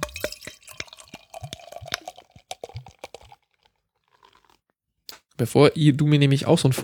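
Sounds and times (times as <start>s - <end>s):
beer pouring into a glass: 0.0s - 4.4s
speech: 5.4s - 6.8s.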